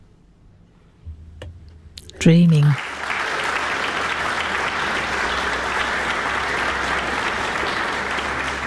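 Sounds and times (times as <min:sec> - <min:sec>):
speech: 0:02.2 - 0:03.0
concert audience applause: 0:02.8 - 0:08.6.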